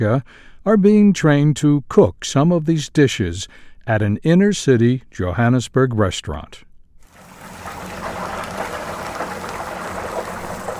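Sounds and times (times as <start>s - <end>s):
speech: 0.0s - 6.7s
chicken coated in spiced batter sizzling in frying oil: 7.0s - 10.7s.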